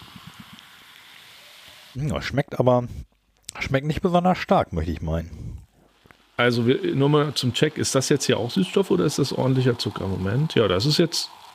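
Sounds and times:
cola fizzing in a glass: 0:00.0 - 0:02.0, 0:05.9 - 0:11.5
speech: 0:02.0 - 0:05.4, 0:06.4 - 0:11.4.

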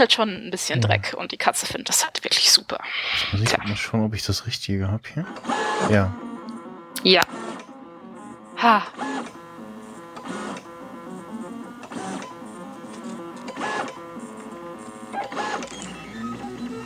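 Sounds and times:
speech: 0:00.0 - 0:06.3, 0:07.0 - 0:07.5, 0:08.6 - 0:09.4
3D printer stepper motors whining while printing circles: 0:05.2 - 0:16.8.

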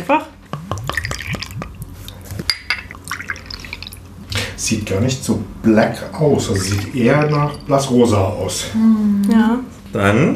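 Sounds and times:
speech: 0:00.1 - 0:00.4, 0:04.6 - 0:10.3
wine poured from bottle into glass: 0:00.7 - 0:04.1, 0:06.2 - 0:08.5.

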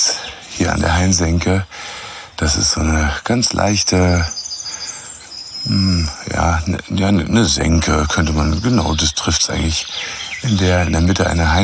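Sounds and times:
low voice-like sound: 0:00.0 - 0:01.7, 0:02.4 - 0:04.3, 0:05.7 - 0:09.8, 0:10.4 - 0:11.6
speech: 0:00.0 - 0:04.4, 0:05.6 - 0:11.6
bird singing in a grove hollow with a hornbeam: 0:00.0 - 0:11.6.

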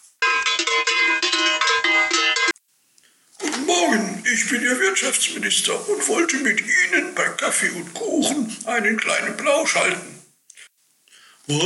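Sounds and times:
ringing a doorbell: 0:00.2 - 0:02.6
speech: 0:03.9 - 0:10.2, 0:11.5 - 0:11.6.

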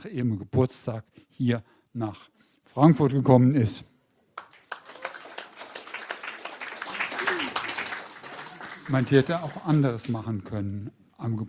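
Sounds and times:
speech: 0:00.0 - 0:03.9, 0:08.9 - 0:11.4
audience applause: 0:04.4 - 0:10.3.

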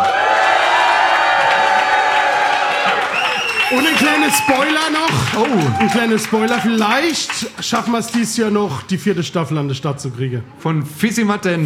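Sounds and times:
audience cheering: 0:00.0 - 0:08.3
speech: 0:03.7 - 0:11.6.

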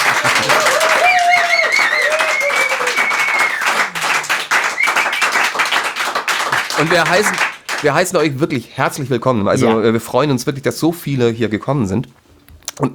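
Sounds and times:
strong applause from studio audience: 0:00.0 - 0:08.4
speech: 0:06.8 - 0:12.2.

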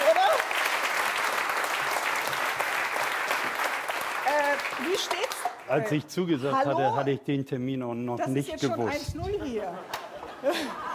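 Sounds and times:
audience applause: 0:00.0 - 0:05.8
speech: 0:04.8 - 0:10.9
laughter: 0:09.5 - 0:10.9.

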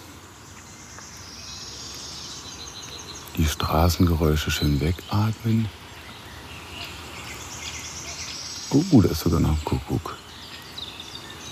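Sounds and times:
faint steady hiss: 0:00.0 - 0:11.5
wood warbler singing in a forest: 0:00.0 - 0:11.5
speech: 0:03.4 - 0:05.8, 0:08.7 - 0:10.2.

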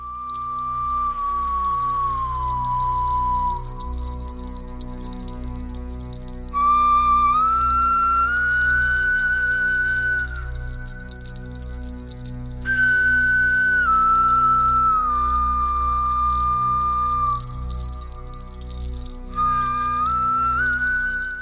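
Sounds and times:
ancient bear thigh-bone flute playing a slow melancholy melody: 0:00.0 - 0:04.6, 0:06.5 - 0:11.6, 0:12.7 - 0:18.6, 0:19.3 - 0:21.4
low continuous backing: 0:00.0 - 0:21.4.

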